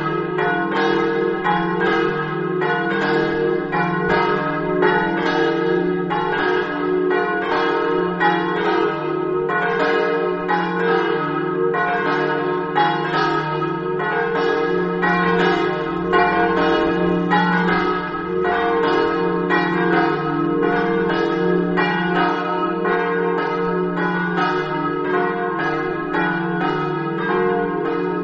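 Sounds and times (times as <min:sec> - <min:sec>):
bells: 0:00.0 - 0:28.2.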